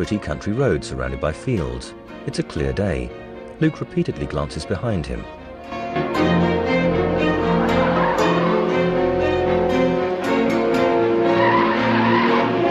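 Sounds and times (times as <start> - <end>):
speech: 0.0 - 6.5
red car swerving round a tight bend: 6.1 - 12.6.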